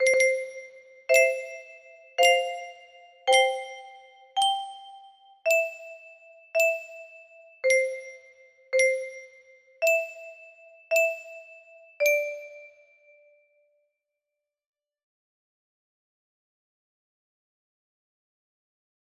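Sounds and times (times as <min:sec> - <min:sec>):
music box: 0:00.0 - 0:13.2.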